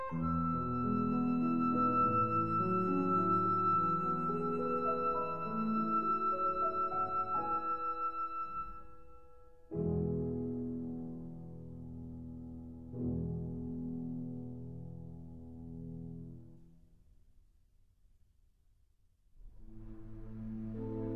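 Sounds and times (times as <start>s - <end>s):
flute and piano lullaby: 0.0s - 15.0s, 19.6s - 21.1s.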